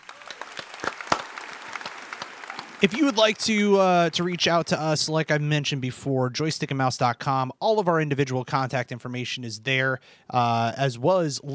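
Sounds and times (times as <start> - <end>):
audience clapping: 0.0 - 5.2
speech: 2.8 - 11.5.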